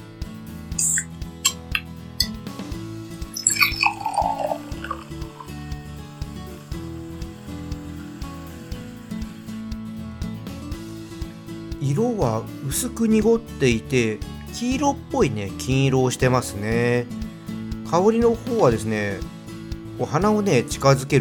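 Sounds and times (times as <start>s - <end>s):
beer glugging into a glass: 3.4s - 5.6s
speech: 12.0s - 17.2s, 17.9s - 19.3s, 20.0s - 21.2s.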